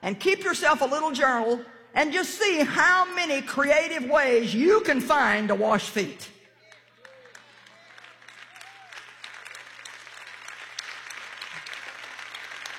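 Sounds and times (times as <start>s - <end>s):
speech: 0.0s - 6.4s
audience applause: 6.6s - 12.7s.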